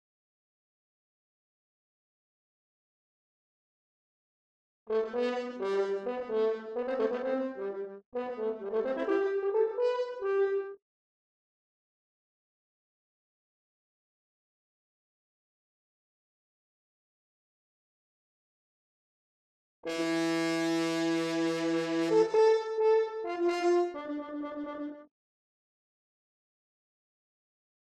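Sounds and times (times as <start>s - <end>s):
horn: 4.9s - 10.8s, 19.8s - 25.1s.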